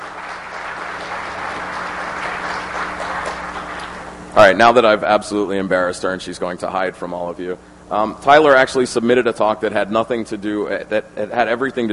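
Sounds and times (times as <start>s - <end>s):
crowd applause: 0.0s - 4.1s
speech: 4.4s - 11.9s.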